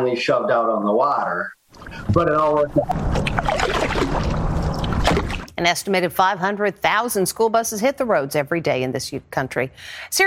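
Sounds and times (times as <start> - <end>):
speech: 0.0 - 4.6, 5.6 - 10.2
kayak paddling on water: 1.8 - 5.5.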